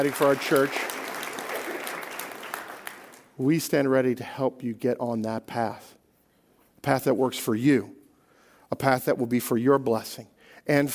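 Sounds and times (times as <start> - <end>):
speech: 0.0 - 1.0, 3.4 - 6.0, 6.8 - 8.0, 8.7 - 10.9
audience applause: 0.0 - 3.3.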